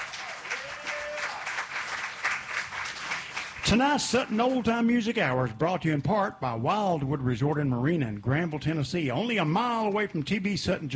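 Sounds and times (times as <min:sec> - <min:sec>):
audience round of applause: 0:00.0 - 0:04.9
speech: 0:03.7 - 0:10.9.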